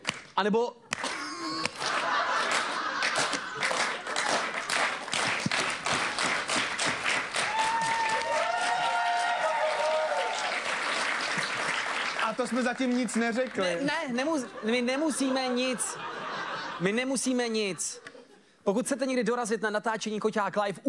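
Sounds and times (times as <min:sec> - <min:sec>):
clapping with long pauses: 0:00.0 - 0:13.6
speech: 0:00.4 - 0:00.8, 0:12.4 - 0:16.1, 0:16.8 - 0:20.8
laughter: 0:01.3 - 0:05.0, 0:14.1 - 0:18.4.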